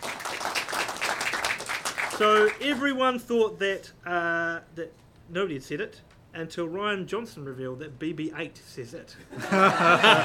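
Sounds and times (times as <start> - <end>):
audience applause: 0.0 - 2.8
speech: 2.2 - 10.2
laughter: 9.3 - 10.2.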